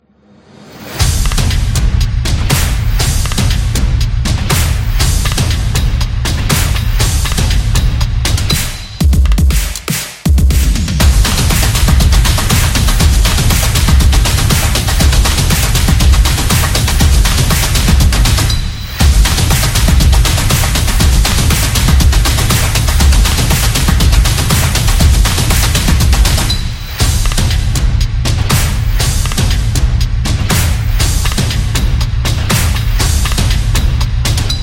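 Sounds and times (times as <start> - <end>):
drum: 0.9 - 34.6.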